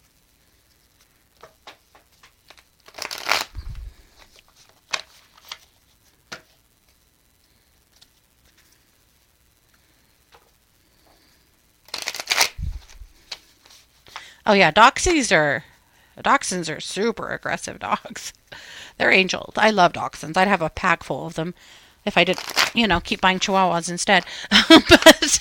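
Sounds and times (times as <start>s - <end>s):
card riffle shuffling: 1.0s - 7.0s, 11.9s - 14.3s, 22.3s - 23.1s
speech: 14.5s - 25.4s.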